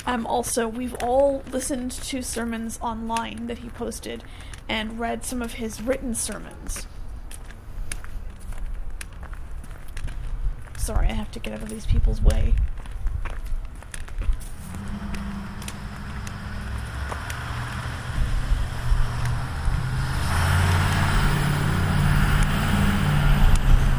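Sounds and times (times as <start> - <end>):
faint footsteps: 0.0 - 23.9
outdoor traffic noise: 0.0 - 23.9
speech: 0.1 - 6.9, 10.9 - 12.7
large lorry passing by: 14.4 - 23.9.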